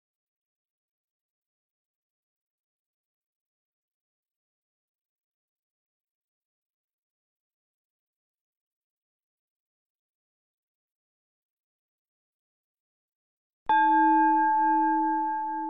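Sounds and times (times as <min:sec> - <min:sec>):
bells for silent meditation: 0:13.7 - 0:15.6.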